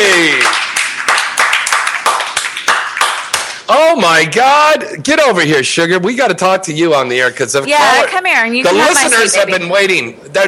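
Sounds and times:
audience applause: 0.0 - 3.6
speech: 4.0 - 10.4.

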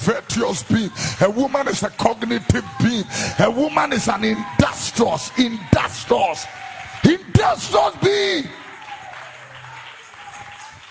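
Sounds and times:
sermon audience clapping along: 0.0 - 10.9
speech: 0.1 - 8.6.

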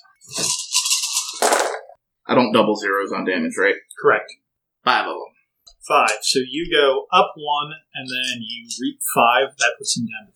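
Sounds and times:
handful of dice rolled, rattling and clattering: 0.3 - 1.9
speech: 2.3 - 10.3.

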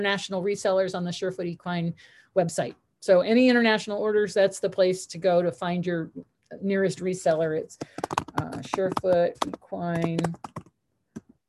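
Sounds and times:
speech: 0.0 - 10.6
typing on a computer keyboard while searching a website: 7.8 - 11.4.

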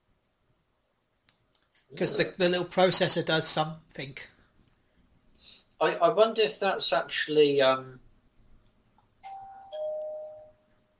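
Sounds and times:
speech: 1.9 - 4.4, 5.8 - 8.0
faint two-tone doorbell chime: 9.2 - 10.7.

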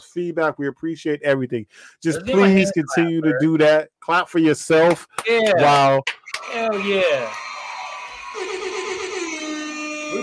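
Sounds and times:
speech: 0.2 - 7.4
happy kids screaming: 6.5 - 10.2.

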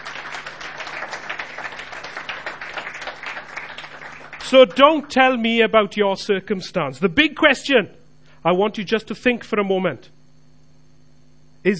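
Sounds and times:
audience applause: 0.0 - 5.5
speech: 4.5 - 10.2.

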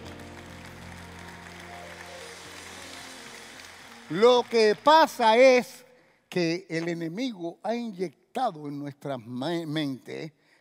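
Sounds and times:
applause: 0.0 - 5.8
speech: 4.1 - 10.4.

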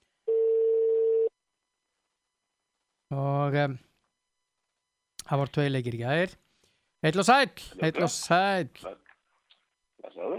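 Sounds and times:
telephone dial tone as a call is placed: 0.3 - 1.3
speech: 3.1 - 3.9, 5.3 - 6.4, 7.0 - 9.0.

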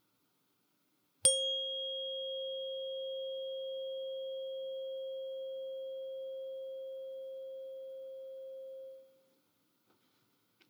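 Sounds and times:
528 hertz tuning fork tone: 1.3 - 9.3.

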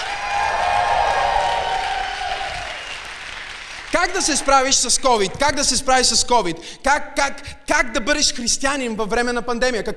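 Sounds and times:
audience applause: 0.0 - 4.9
cheering voices: 0.0 - 4.9
speech: 4.0 - 9.9.

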